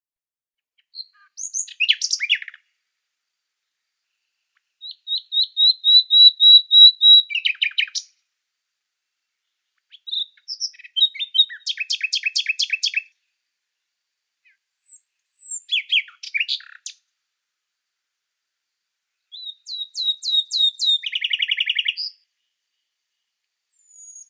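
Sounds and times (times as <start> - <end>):
Common nightingale singing sharp high notes and rapid rattling trills: 0.9 - 2.6, 4.8 - 8.1, 9.9 - 13.1, 14.4 - 17.0, 19.3 - 22.2, 23.7 - 24.2.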